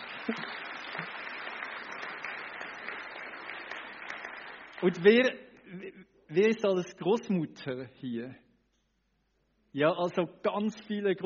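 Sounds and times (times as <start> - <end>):
audience applause: 0.0 - 5.2
speech: 0.3 - 0.6, 4.8 - 8.4, 9.8 - 11.2.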